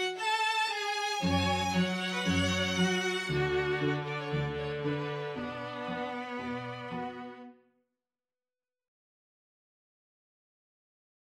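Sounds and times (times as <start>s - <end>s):
string quartet: 0.0s - 7.6s.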